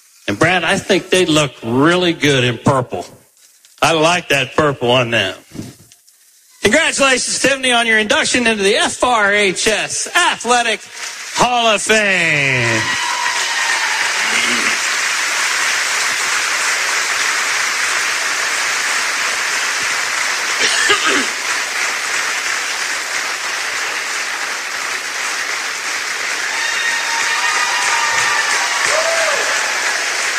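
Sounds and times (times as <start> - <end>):
speech: 0.3 - 3.2, 3.8 - 5.7, 6.6 - 13.1
audience applause at a high school athletic hall of fame induction: 8.3 - 30.3.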